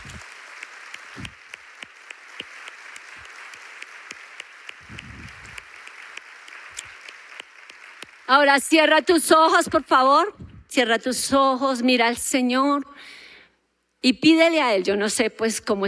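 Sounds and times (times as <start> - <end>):
audience applause: 0.0 - 8.5
speech: 8.3 - 13.2, 14.0 - 15.8.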